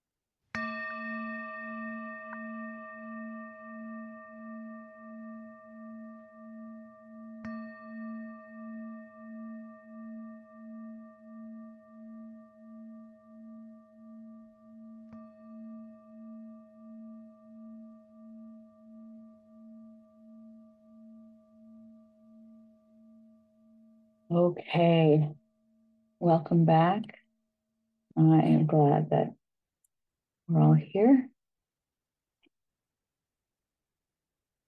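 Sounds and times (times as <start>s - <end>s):
meditation bell ringing: 0.5s - 24.3s
speech: 24.3s - 25.4s, 26.2s - 27.2s, 28.2s - 29.4s, 30.5s - 31.2s.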